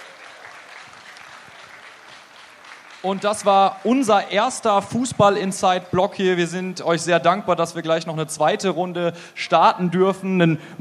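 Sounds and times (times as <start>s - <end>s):
audience applause: 0.0s - 4.9s
speech: 3.0s - 10.8s.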